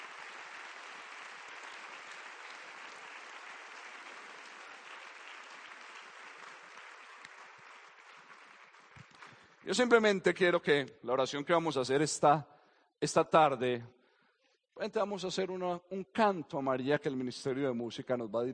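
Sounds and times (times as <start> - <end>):
audience applause: 0.0 - 10.0
speech: 9.6 - 14.0, 14.8 - 18.5.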